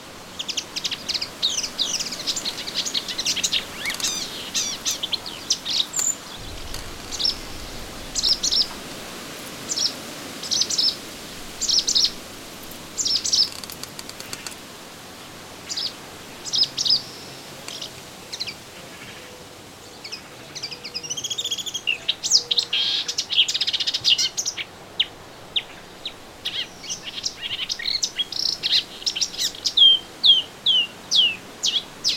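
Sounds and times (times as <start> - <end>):
melodious warbler twittering song: 0.4 - 12.2, 12.9 - 14.6, 19.9 - 32.1.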